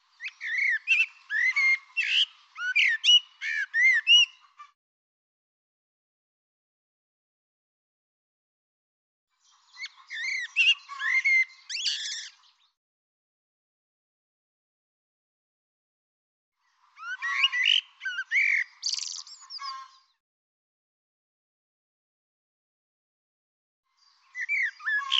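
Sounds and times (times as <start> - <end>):
bird song of whistled notes with twittering: 0.0 - 4.7, 9.4 - 12.8, 16.6 - 20.2, 23.9 - 25.1.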